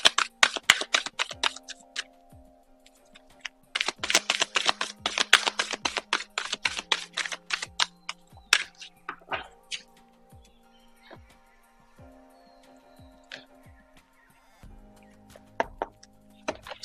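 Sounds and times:
oracle cards being shuffled and drawn: 0.0 - 2.1, 2.9 - 9.9
soft steady drone: 0.0 - 16.8.

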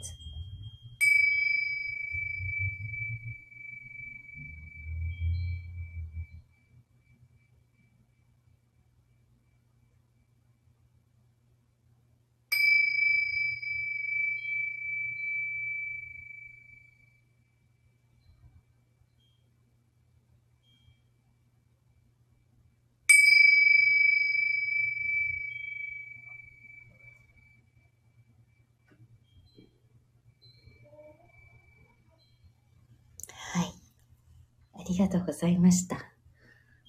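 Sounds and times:
Tibetan tingsha hand cymbals rung during a singing bowl sound healing session: 0.0 - 6.7, 12.5 - 17.3, 23.1 - 27.6
speech: 34.9 - 36.2.

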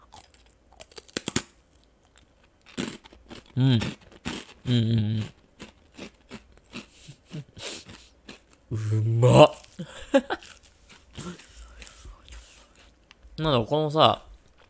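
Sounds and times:
crunching thick sugar-coated zarame senbei rice crackers: 0.0 - 8.6, 9.3 - 13.2
speech: 3.6 - 4.0, 4.7 - 5.4, 8.9 - 10.3, 13.4 - 14.2
murmured voiced sounds: 8.7 - 9.6.

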